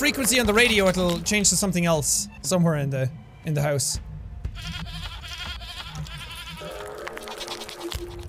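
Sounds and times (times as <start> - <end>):
speech: 0.0 - 5.0
goat bleating: 4.5 - 8.2.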